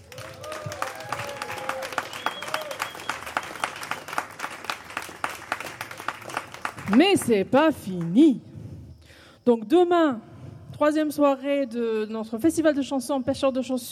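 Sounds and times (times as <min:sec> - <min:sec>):
audience applause: 0:00.0 - 0:07.3
speech: 0:06.9 - 0:08.5, 0:09.5 - 0:13.9.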